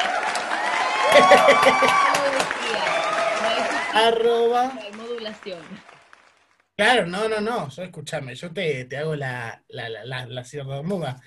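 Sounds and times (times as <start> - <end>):
laughter: 0.0 - 5.8, 6.8 - 11.2
applause: 0.0 - 6.4
speech: 1.2 - 3.2, 3.9 - 5.9, 6.8 - 11.2.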